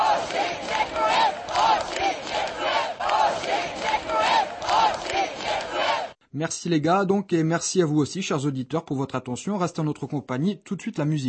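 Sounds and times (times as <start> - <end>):
football fans chanting a thank-you in an old town square: 0.0 - 6.2
speech: 6.4 - 11.2.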